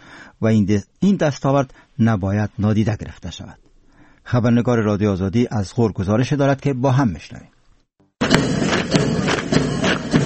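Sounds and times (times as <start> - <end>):
speech: 0.4 - 3.6, 4.3 - 7.5
marching footsteps during military drill: 8.2 - 10.2.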